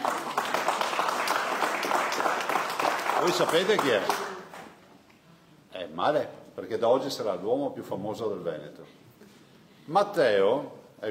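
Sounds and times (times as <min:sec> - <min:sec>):
crowd applauding: 0:00.0 - 0:04.6
speech: 0:03.2 - 0:04.3, 0:06.0 - 0:09.0, 0:09.9 - 0:11.0.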